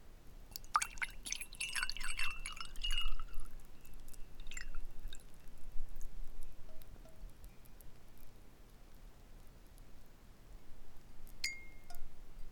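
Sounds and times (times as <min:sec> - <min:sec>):
water pouring into a glass goblet: 0:00.5 - 0:06.1.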